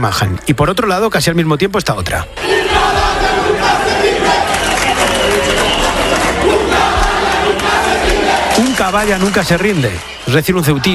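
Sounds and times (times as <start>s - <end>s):
speech: 0.0s - 3.8s, 8.8s - 10.9s
crowd ovation and cheering: 2.4s - 10.9s.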